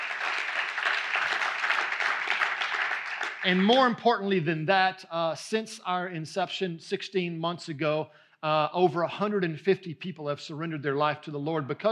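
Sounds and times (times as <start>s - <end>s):
audience applauding: 0.0s - 3.9s
speech: 3.4s - 11.9s.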